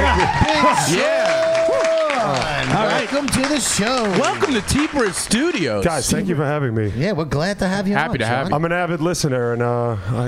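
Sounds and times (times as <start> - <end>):
virtual audience applause sound effect: 0.0 - 6.0
speech: 0.7 - 1.2, 3.1 - 10.2.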